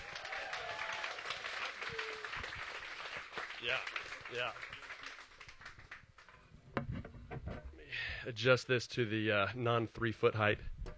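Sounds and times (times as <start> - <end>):
audience applause welcoming a speaker: 0.0 - 6.3
speech: 3.6 - 4.7, 8.2 - 10.7.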